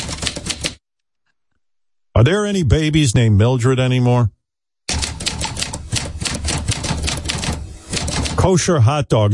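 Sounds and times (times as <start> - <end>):
typewriter sound effect: 0.0 - 0.8, 4.9 - 8.5
speech: 2.2 - 4.4, 8.4 - 9.3.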